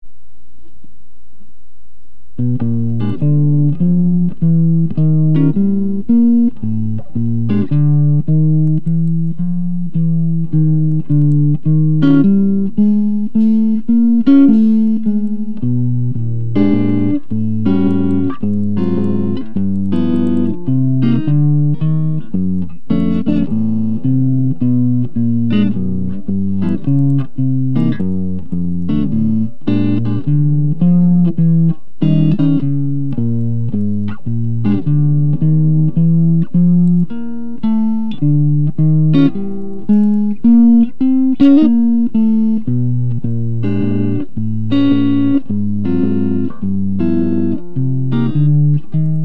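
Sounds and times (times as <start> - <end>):
jazz music: 2.4 - 49.1.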